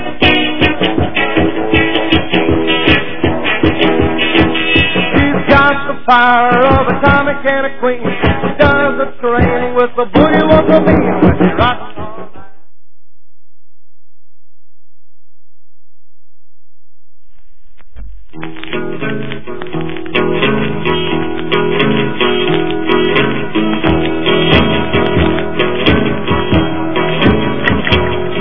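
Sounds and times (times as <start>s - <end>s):
boogie music: 0.0s - 12.5s, 18.3s - 28.3s.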